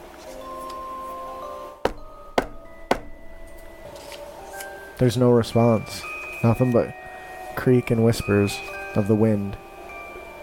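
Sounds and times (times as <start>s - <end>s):
loud knocking: 1.9s - 4.0s
speech: 5.0s - 7.0s, 7.6s - 9.6s.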